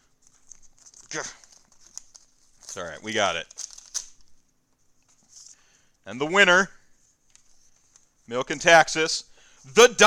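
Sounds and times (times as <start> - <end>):
paper envelope torn open: 0.5 - 4.2
speech: 1.1 - 1.4, 2.8 - 3.6, 6.1 - 6.8, 8.3 - 10.0.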